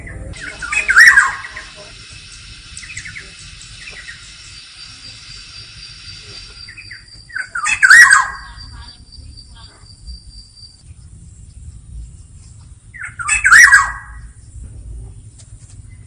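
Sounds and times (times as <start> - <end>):
Black-naped oriole squawk with looping whistled note: 0.4 - 1.8, 6.6 - 8.7, 13.0 - 14.2.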